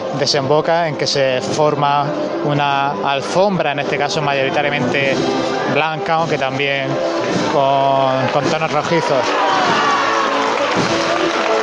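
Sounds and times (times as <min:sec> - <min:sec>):
speech: 0:00.1 - 0:09.9
crowd applauding and cheering vivas: 0:07.1 - 0:11.6.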